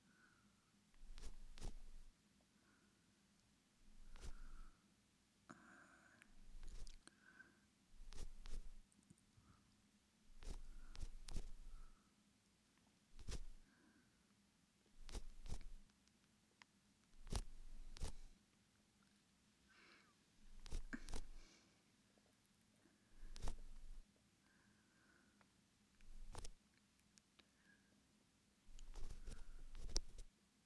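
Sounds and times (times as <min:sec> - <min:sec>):
ear pick cleaning in the left ear: 0:01.0 - 0:02.1, 0:03.9 - 0:04.6, 0:06.4 - 0:07.0, 0:08.0 - 0:08.8, 0:10.4 - 0:11.8, 0:13.2 - 0:13.6, 0:15.0 - 0:15.8, 0:17.2 - 0:18.3, 0:20.5 - 0:21.4, 0:23.2 - 0:24.0, 0:26.0 - 0:26.6, 0:28.7 - 0:30.3.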